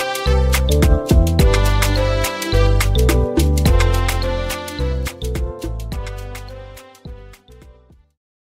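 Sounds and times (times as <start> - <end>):
Afro pop instrumental: 0.0 - 8.0.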